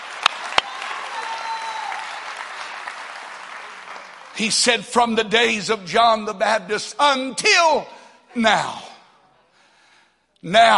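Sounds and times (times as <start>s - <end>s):
audience clapping hands: 0.0s - 5.0s
speech: 4.4s - 8.9s, 10.4s - 10.7s.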